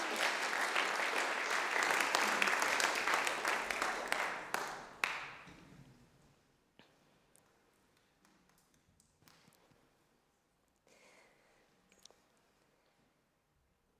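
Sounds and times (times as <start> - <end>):
audience applause: 0.0 - 5.4.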